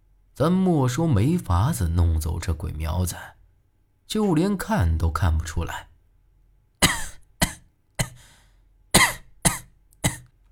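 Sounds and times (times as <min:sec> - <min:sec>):
speech: 0:00.4 - 0:03.4, 0:04.1 - 0:05.9
person coughing: 0:06.8 - 0:08.4, 0:09.0 - 0:10.3.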